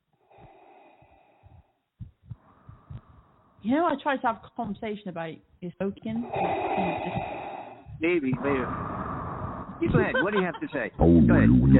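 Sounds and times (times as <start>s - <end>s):
heavy raspy breathing of a caller: 0.0s - 3.7s, 6.0s - 11.3s
speech: 3.6s - 7.3s, 8.0s - 8.9s, 9.8s - 11.7s
laughter: 9.8s - 11.7s.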